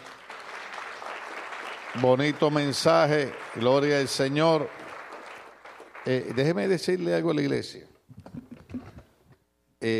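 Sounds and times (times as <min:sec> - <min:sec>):
crowd applause: 0:00.0 - 0:07.0
speech: 0:02.0 - 0:04.8, 0:06.0 - 0:07.9.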